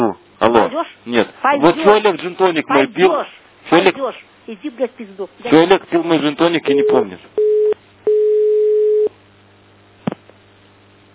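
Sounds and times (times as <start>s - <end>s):
speech: 0.8s - 7.4s
telephone busy signal: 6.7s - 9.1s.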